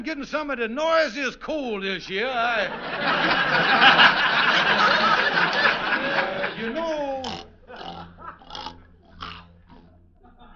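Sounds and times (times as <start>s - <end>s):
speech: 0.0s - 5.7s
steady low hum: 1.4s - 10.5s
laughter: 2.2s - 9.1s, 10.2s - 10.5s
pig grunting: 6.6s - 10.0s.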